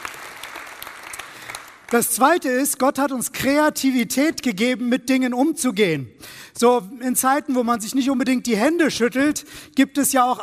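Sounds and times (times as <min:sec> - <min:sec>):
audience clapping: 0:00.0 - 0:02.4
speech: 0:01.9 - 0:10.4.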